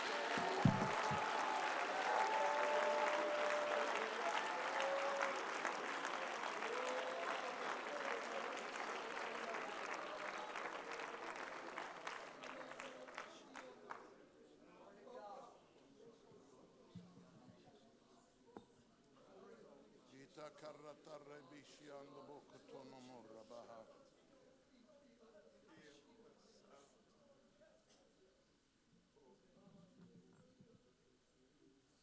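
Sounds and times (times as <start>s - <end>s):
audience clapping: 0.0s - 14.1s.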